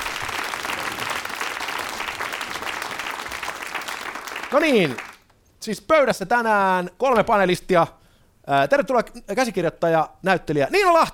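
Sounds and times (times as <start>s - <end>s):
audience applause: 0.0s - 5.3s
speech: 4.5s - 5.0s, 5.6s - 11.1s.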